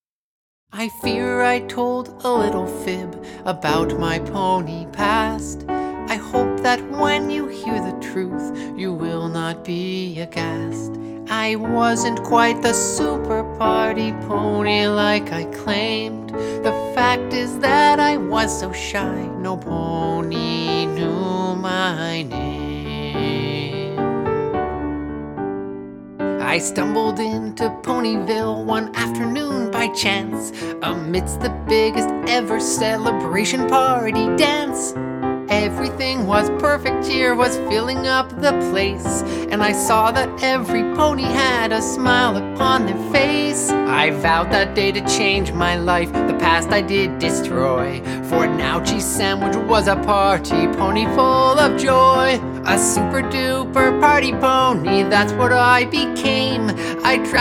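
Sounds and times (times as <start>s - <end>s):
piano: 0.7s - 57.4s.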